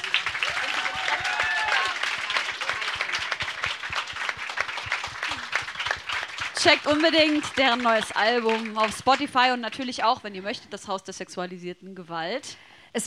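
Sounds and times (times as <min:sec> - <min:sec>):
audience applause: 0:00.0 - 0:09.4
speech: 0:06.6 - 0:13.0.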